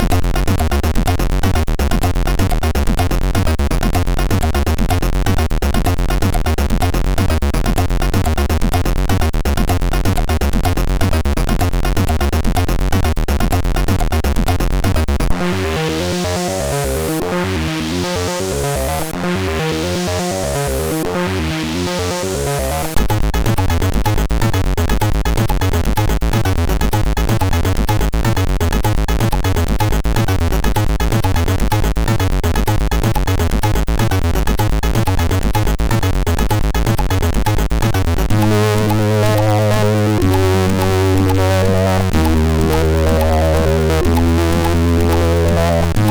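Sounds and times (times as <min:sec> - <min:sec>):
MOS6581R3 chiptune hard breakbeat: 0:00.0 - 0:46.1.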